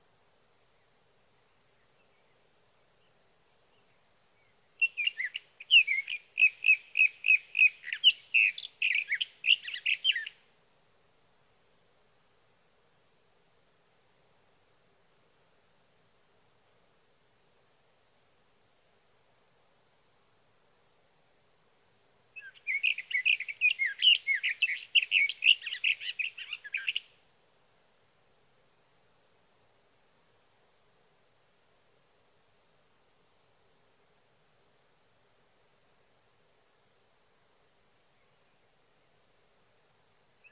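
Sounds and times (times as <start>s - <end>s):
Sage thrasher song: 4.4s - 10.4s, 22.4s - 27.1s.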